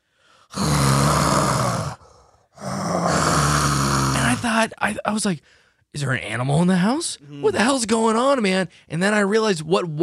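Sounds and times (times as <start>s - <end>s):
person imitating loud snoring through a wall: 0.5s - 4.6s
speech: 4.6s - 10.0s.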